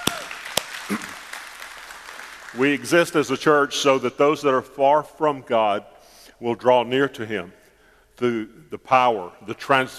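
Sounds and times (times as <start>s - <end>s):
audience applause: 0.0s - 2.8s
loud sharp claps: 0.0s - 3.3s
speech: 2.6s - 7.6s, 8.2s - 9.9s.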